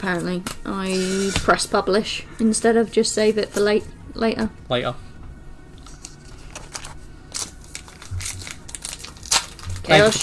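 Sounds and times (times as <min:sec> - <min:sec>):
speech: 0:00.0 - 0:05.1, 0:09.9 - 0:10.2
Pokémon Obsidian Flames card packs torn open: 0:05.8 - 0:10.2.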